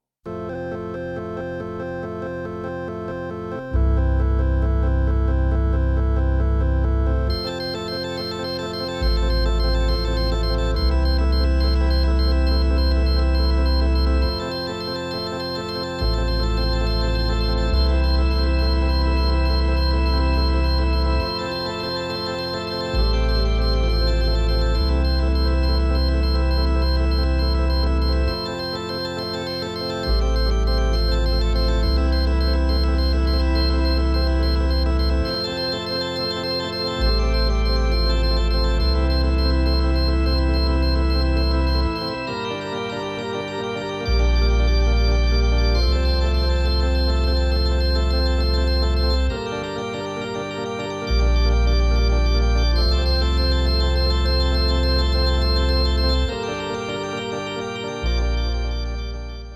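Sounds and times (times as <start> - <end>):
organ piece: 0.3 - 59.5.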